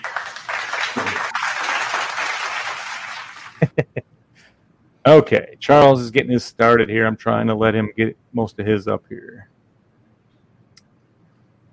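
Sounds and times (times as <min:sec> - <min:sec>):
sharp hand claps: 0:00.0 - 0:03.6
crowd applause: 0:00.0 - 0:03.7
speech: 0:03.7 - 0:04.1, 0:05.0 - 0:09.5.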